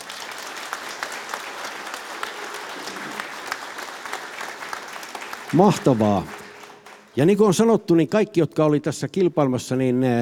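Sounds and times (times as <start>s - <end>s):
audience applause: 0.0s - 7.4s
speech: 5.5s - 6.4s, 7.2s - 10.2s.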